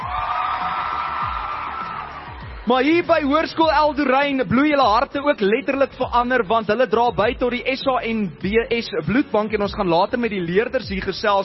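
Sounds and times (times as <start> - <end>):
crowd at a high school gathering cheering and whooping: 0.0 - 3.4
speech: 2.6 - 11.4.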